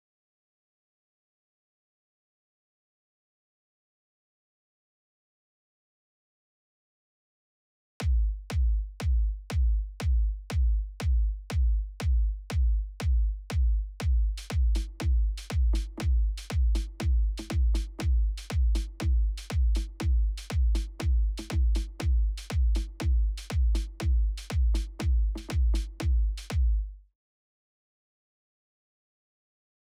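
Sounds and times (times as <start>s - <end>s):
percussion: 8.0s - 27.0s.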